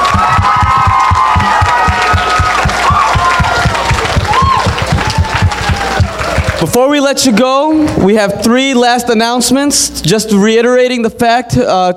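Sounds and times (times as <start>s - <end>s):
audience applause: 0.0s - 6.8s
audience cheering: 0.0s - 7.7s
speech: 6.8s - 11.9s.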